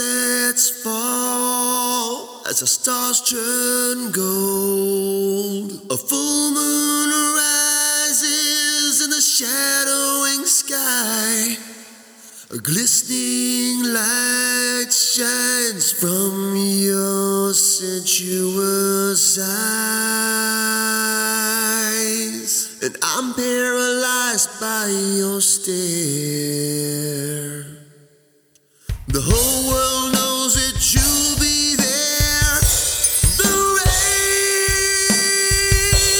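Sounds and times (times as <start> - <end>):
lead vocals: 0.0 - 36.1
ambient music: 29.3 - 36.1.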